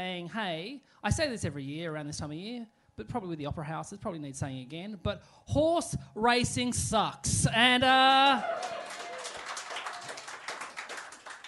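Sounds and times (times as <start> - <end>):
speech: 0.0 - 8.8
scattered applause from a comedy show audience: 8.3 - 11.4.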